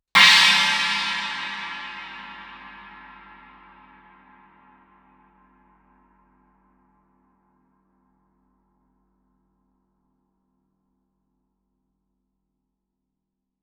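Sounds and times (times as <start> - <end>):
Chinese suspended cymbal struck loudly with stick shoulder: 0.2 - 4.2.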